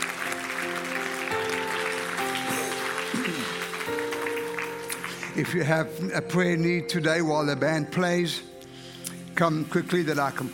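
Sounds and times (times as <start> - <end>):
audience clapping and shouting: 0.0 - 5.6
speech: 5.4 - 8.5, 9.4 - 10.5.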